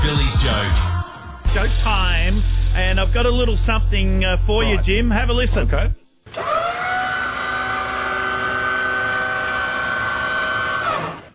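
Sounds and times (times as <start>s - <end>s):
speech: 0.1s - 0.9s, 1.5s - 6.5s
lift motor running: 6.3s - 11.3s.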